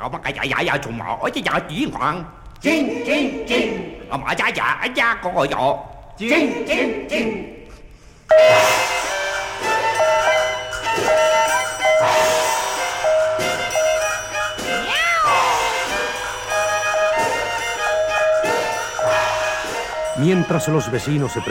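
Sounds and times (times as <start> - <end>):
speech: 0.0 - 7.5, 8.3 - 8.8, 20.2 - 21.4
bright tinkling oriental-style music with chiming notes: 8.3 - 21.4
cat yowling as its tail is stepped on: 14.8 - 15.6.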